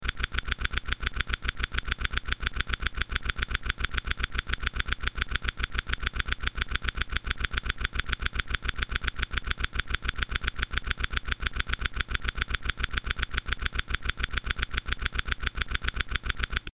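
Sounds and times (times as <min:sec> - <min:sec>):
reel spinning: 0:00.0 - 0:16.7.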